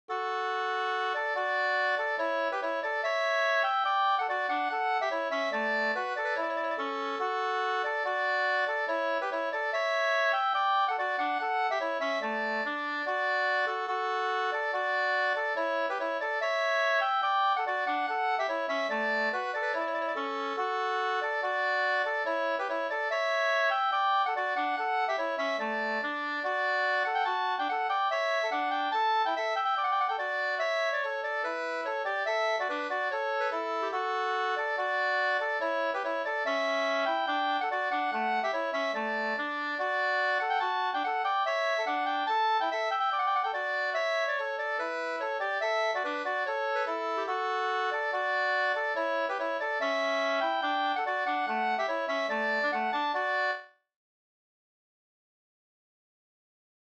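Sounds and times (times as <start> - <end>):
reinlender folk dance music: 0.1 - 53.6.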